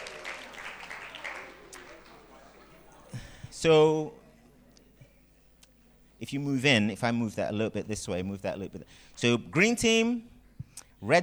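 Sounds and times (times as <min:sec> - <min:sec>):
audience applause: 0:00.0 - 0:03.1
speech: 0:03.6 - 0:04.2, 0:06.2 - 0:10.3, 0:11.0 - 0:11.2.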